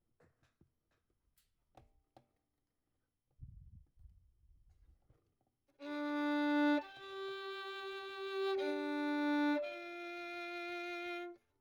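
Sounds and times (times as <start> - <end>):
violin: 5.8 - 11.5.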